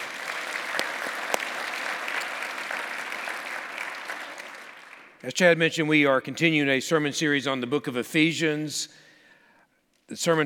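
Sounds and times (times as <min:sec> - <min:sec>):
audience applauding after choir anthem: 0:00.0 - 0:05.2
speech: 0:05.2 - 0:09.0, 0:10.1 - 0:10.4.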